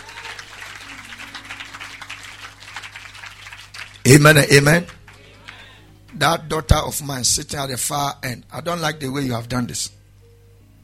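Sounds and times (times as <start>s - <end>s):
congregation clapping hands in a church service: 0.0s - 6.3s
low constant hum: 0.0s - 10.8s
speech: 4.1s - 5.0s, 6.2s - 10.0s.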